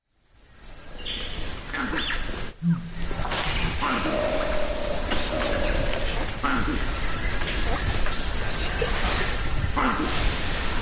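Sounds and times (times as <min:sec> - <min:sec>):
steady broadband forest hiss: 0:00.0 - 0:10.8
Campbell's monkey calls: 0:03.8 - 0:10.3.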